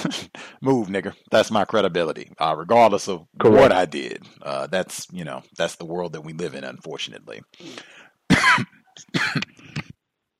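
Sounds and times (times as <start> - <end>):
speech: 0.1 - 9.8
person coughing after choking: 8.3 - 10.0.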